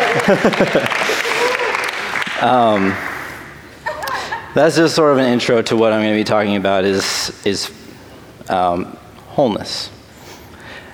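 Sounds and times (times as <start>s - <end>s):
laughter: 0.0s - 1.9s, 3.8s - 4.8s
audience clapping: 0.0s - 3.5s
speech: 0.2s - 1.0s, 2.4s - 3.1s, 4.5s - 7.8s, 8.5s - 10.0s.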